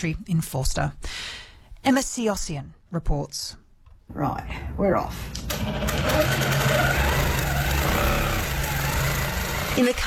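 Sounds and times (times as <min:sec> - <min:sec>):
speech: 0:00.0 - 0:06.9, 0:09.8 - 0:10.0
quilting machine whirring in a country cottage: 0:05.3 - 0:10.0.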